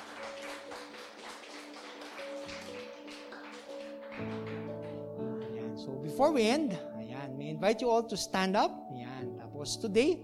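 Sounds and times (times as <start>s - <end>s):
audience clapping: 0.0s - 5.6s
speech: 6.0s - 6.9s, 7.6s - 8.9s, 9.6s - 10.2s.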